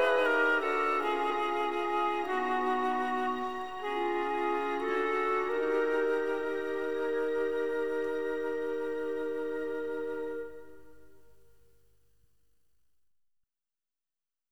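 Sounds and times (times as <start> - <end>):
string orchestra: 0.0 - 11.3.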